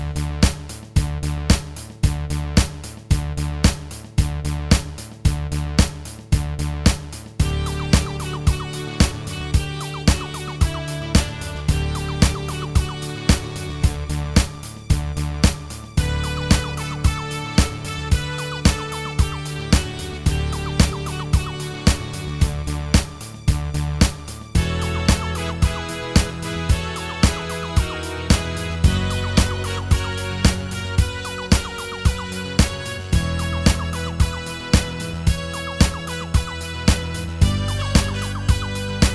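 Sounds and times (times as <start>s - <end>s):
music medley recorded on a mobile phone: 0.0s - 39.1s.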